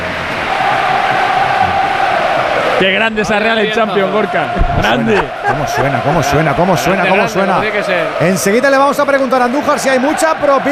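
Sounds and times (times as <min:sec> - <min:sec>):
stadium crowd applauding: 0:00.0 - 0:10.7
speech: 0:02.8 - 0:10.7
laughter: 0:03.9 - 0:07.9.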